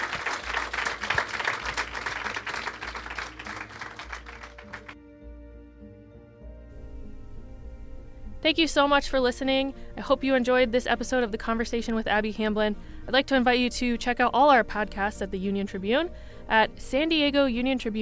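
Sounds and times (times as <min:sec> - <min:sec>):
audience applause: 0:00.0 - 0:05.0
speech: 0:08.4 - 0:18.0.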